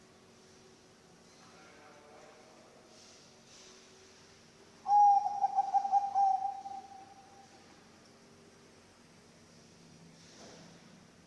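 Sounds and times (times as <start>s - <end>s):
zebra dove pulsing coo: 4.9s - 7.4s.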